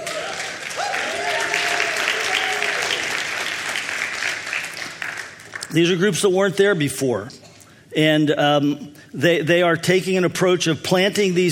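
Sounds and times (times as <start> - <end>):
crowd whooping and cheering: 0.0 - 3.5
crowd clapping: 0.0 - 6.0
speech: 5.7 - 7.4, 8.0 - 11.5.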